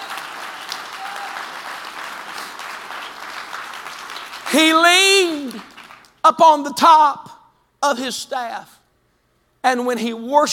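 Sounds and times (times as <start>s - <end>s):
audience clapping hands: 0.0s - 6.2s
speech: 4.5s - 5.7s, 6.3s - 8.8s, 9.6s - 10.5s.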